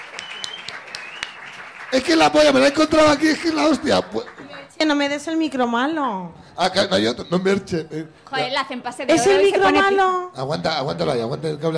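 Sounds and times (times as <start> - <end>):
audience applause: 0.0 - 4.8
speech: 1.9 - 11.7.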